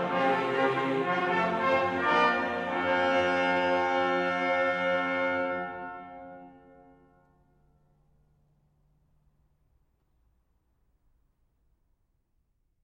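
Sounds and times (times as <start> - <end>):
choir singing: 0.0 - 5.8.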